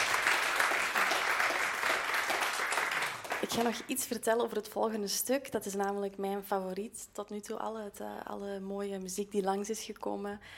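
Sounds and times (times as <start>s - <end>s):
audience applause: 0.0s - 3.8s
speech: 3.5s - 10.5s.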